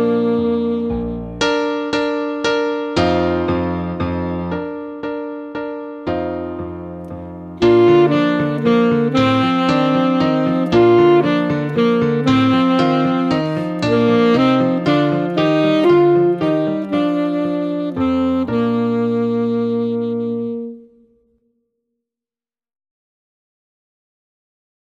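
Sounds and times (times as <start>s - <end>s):
waltz solo and accompaniment: 0.0s - 21.2s.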